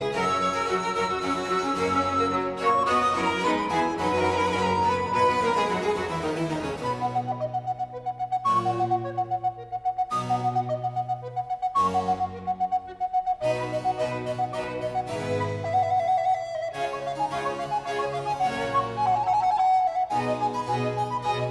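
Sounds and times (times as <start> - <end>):
alto recorder and basso continuo concerto minuet in C major: 0.0 - 21.5.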